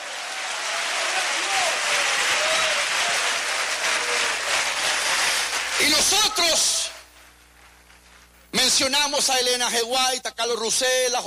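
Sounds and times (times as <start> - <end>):
audience applause: 0.0 - 7.2
speech: 5.9 - 6.8, 8.7 - 11.2.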